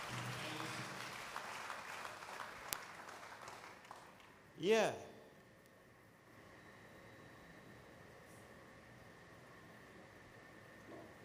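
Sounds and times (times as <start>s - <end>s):
audience clapping: 0.0s - 4.4s
speech: 4.6s - 5.1s.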